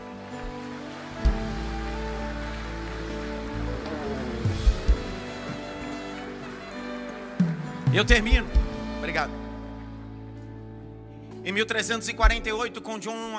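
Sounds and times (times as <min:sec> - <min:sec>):
audience applauding: 0:00.0 - 0:09.9
speech: 0:07.9 - 0:09.4, 0:11.4 - 0:13.3.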